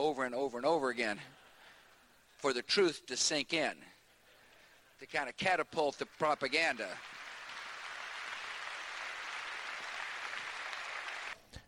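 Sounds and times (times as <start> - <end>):
speech: 0.0 - 1.4, 2.4 - 3.9, 5.0 - 7.2
applause from a large crowd: 6.0 - 11.4.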